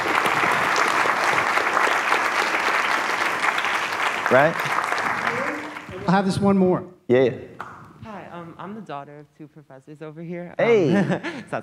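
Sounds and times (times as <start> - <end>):
audience round of applause: 0.0 - 6.3
speech: 4.3 - 4.8, 6.1 - 7.6, 8.9 - 11.6.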